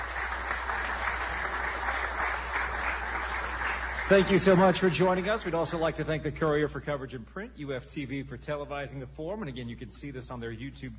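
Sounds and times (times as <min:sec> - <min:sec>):
audience applause: 0:00.0 - 0:05.8
speech: 0:04.1 - 0:10.9.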